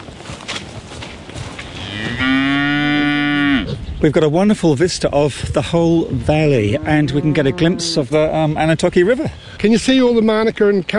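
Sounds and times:
cow mooing: 1.8s - 3.8s, 6.6s - 8.2s
speech: 4.0s - 10.9s.

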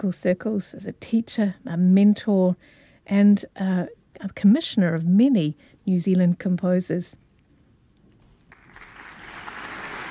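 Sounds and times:
speech: 0.0s - 7.2s
concert audience applause: 8.5s - 10.0s.

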